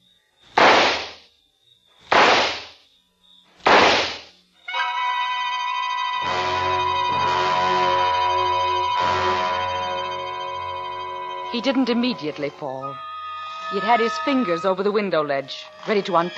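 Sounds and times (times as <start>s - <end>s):
pistol gunshots: 0.6s - 1.2s, 2.1s - 2.8s, 3.7s - 4.3s
ringing tonal drone with soft pulsing swells: 4.7s - 16.3s
speech: 11.6s - 13.1s, 13.7s - 16.3s.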